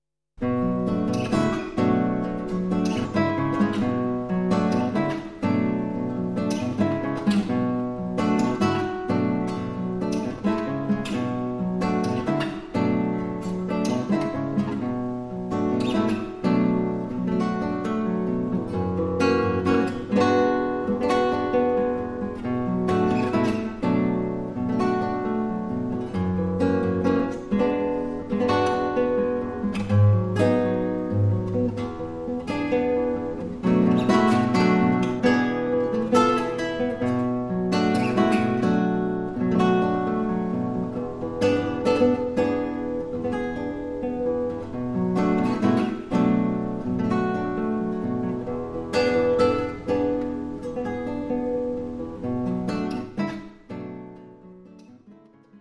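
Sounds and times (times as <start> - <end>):
guitar: 0.4 - 55.5.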